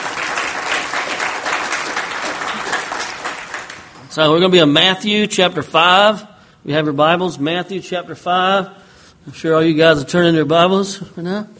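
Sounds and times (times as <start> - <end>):
audience applause at a church gathering: 0.0 - 4.0
speech: 4.2 - 11.5.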